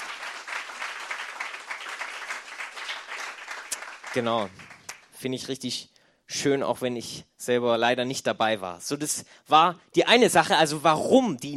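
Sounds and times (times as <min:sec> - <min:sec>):
audience applause: 0:00.0 - 0:05.1
speech: 0:04.1 - 0:11.5.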